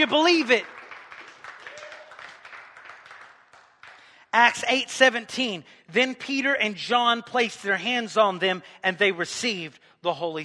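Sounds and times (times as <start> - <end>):
speech: 0.0 - 0.8, 4.4 - 10.4
audience clapping: 0.0 - 4.6.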